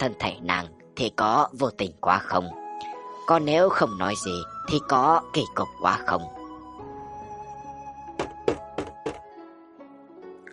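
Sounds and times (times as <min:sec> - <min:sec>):
speech: 0:00.0 - 0:02.6, 0:03.3 - 0:06.4
soft music: 0:00.0 - 0:10.5
knocking on a room door: 0:08.2 - 0:09.3.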